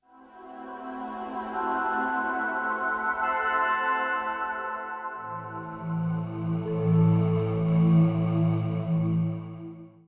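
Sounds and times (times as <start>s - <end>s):
space synth pad: 0.4s - 10.0s.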